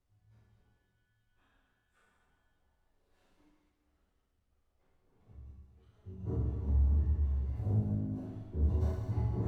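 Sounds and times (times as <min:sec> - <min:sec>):
bass: 0:06.1 - 0:09.4.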